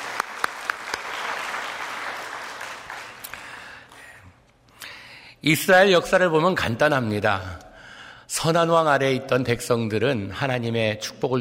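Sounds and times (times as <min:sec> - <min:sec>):
audience applause: 0:00.0 - 0:03.8
speech: 0:05.4 - 0:07.6, 0:08.3 - 0:11.3.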